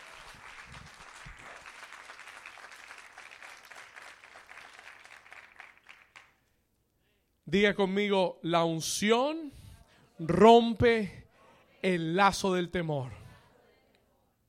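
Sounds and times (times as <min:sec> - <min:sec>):
loud audience applause: 0:00.0 - 0:06.4
speech: 0:07.5 - 0:09.6, 0:10.2 - 0:11.2, 0:11.8 - 0:13.2.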